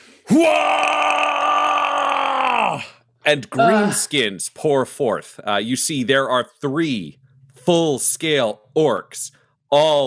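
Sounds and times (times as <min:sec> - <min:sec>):
speech: 0:00.3 - 0:01.2, 0:03.2 - 0:10.0
guttural roar of rage: 0:00.3 - 0:03.0.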